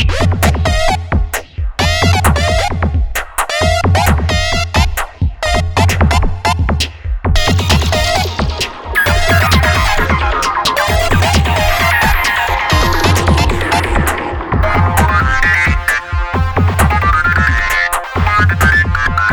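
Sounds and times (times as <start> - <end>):
rude synth: 0.0 - 1.2, 1.8 - 19.3.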